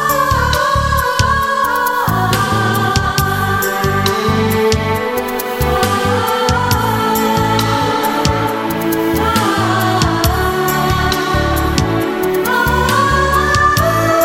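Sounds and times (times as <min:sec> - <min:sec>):
flute music: 0:00.0 - 0:14.2.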